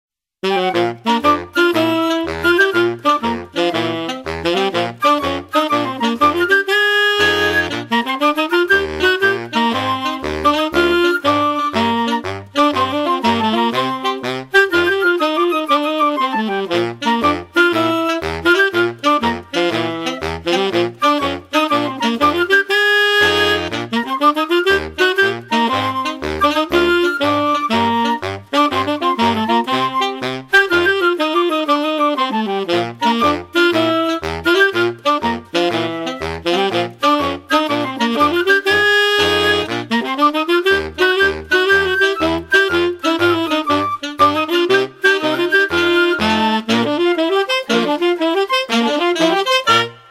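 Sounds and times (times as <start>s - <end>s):
TV theme jazz band: 0.4s - 50.0s
saxophone: 0.4s - 50.0s.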